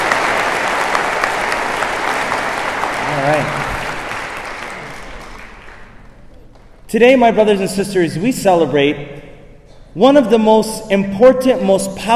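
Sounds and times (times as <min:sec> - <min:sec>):
audience clapping: 0:00.0 - 0:06.8
speech: 0:06.9 - 0:09.2, 0:10.0 - 0:12.1.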